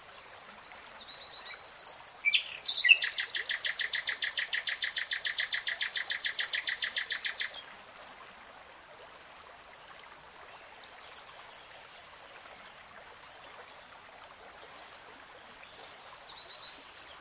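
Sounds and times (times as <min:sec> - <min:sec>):
nightingale singing: 0:02.1 - 0:07.6.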